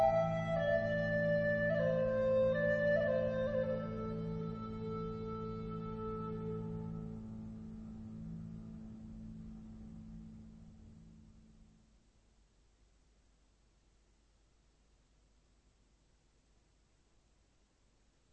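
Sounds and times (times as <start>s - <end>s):
Irish lullaby: 0.0s - 10.5s.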